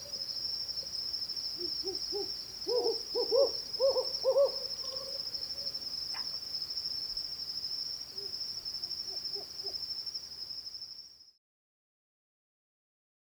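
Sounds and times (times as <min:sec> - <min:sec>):
Hume's owl pulsed and compound hooting in territorial confrontation: 0:01.6 - 0:06.3, 0:08.2 - 0:09.8.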